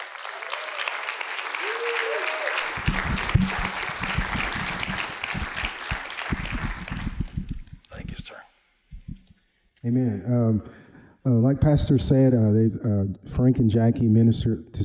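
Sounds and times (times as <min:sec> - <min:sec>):
audience applause: 0:00.0 - 0:07.6
speech: 0:09.9 - 0:14.8.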